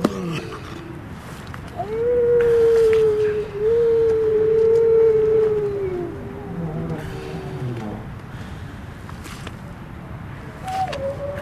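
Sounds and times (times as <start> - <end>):
Grey seal howling: 1.7 - 8.4, 10.6 - 11.4.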